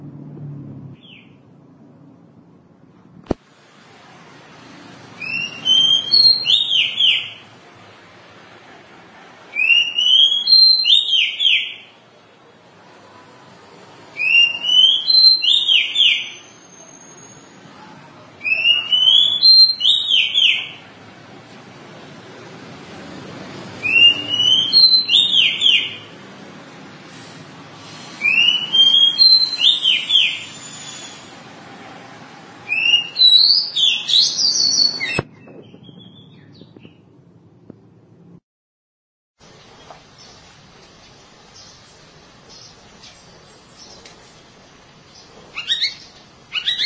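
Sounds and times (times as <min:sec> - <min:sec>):
Oriental magpie-robin singing: 0:05.2 - 0:07.4, 0:09.6 - 0:11.9, 0:14.2 - 0:17.6, 0:18.4 - 0:20.8, 0:23.8 - 0:26.1, 0:28.2 - 0:31.3, 0:32.7 - 0:37.0, 0:45.1 - 0:46.8.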